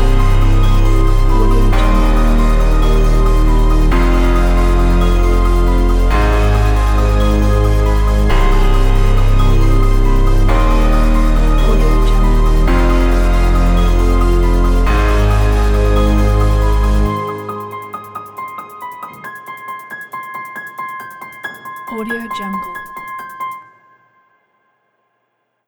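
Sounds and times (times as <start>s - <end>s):
horror movie music: 0.0s - 18.6s.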